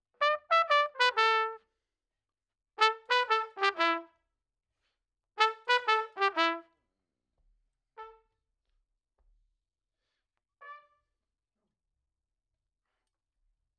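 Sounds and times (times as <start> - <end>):
trumpet: 0.1 - 1.7, 2.8 - 4.2, 5.4 - 6.8, 8.0 - 8.3, 10.6 - 11.0.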